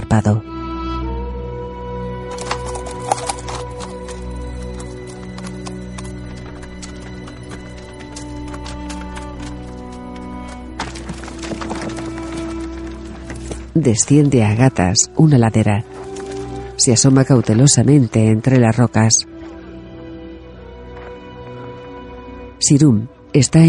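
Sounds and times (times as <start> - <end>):
speech: 0.1 - 0.5, 13.8 - 16.0, 16.8 - 19.3, 22.7 - 23.6
donkey hooves clip-clopping: 2.2 - 18.2.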